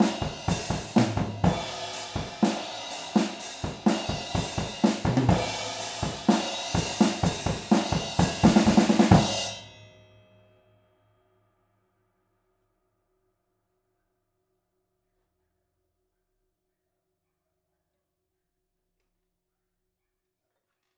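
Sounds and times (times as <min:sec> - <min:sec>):
drums: 0:00.0 - 0:09.8.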